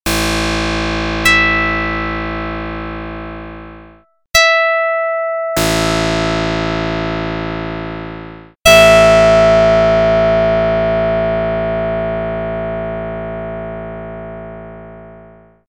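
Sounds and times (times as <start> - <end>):
plucked note: 0.2 - 15.6.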